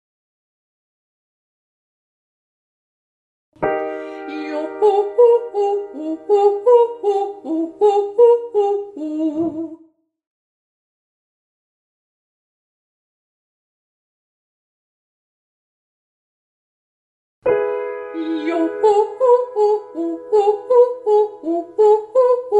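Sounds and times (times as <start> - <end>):
voice singing ascending triads on yoh: 4.3 - 9.8, 18.2 - 22.5.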